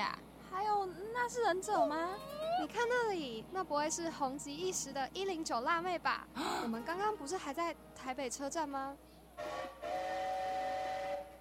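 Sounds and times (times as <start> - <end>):
speech: 0.0 - 9.8
train whistle as the train prepares to depart: 9.4 - 11.4.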